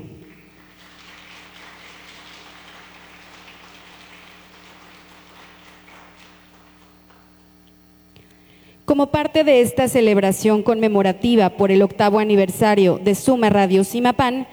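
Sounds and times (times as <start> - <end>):
applause: 0.0 - 7.5
speech: 8.9 - 14.5.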